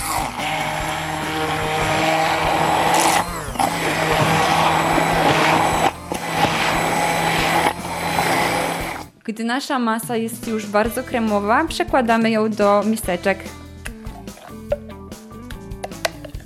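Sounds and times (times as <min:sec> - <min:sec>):
blender blending ingredients into a smooth mass: 0:00.0 - 0:09.1
speech: 0:09.3 - 0:13.6.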